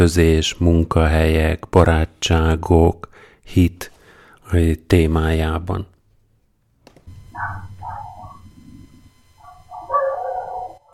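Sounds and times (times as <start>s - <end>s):
speech: 0.0s - 3.9s, 4.5s - 5.9s
dogs barking next door: 7.3s - 8.6s, 9.4s - 10.9s.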